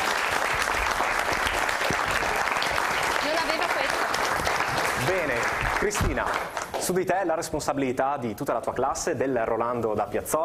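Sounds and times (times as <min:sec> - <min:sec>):
audience applause: 0:00.0 - 0:06.9
speech: 0:05.1 - 0:10.4.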